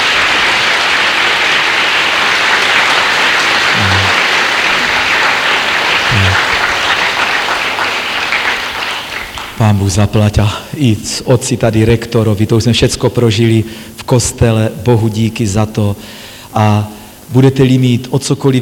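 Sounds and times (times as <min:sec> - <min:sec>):
audience applause: 0:00.0 - 0:09.8
speech: 0:09.6 - 0:18.5.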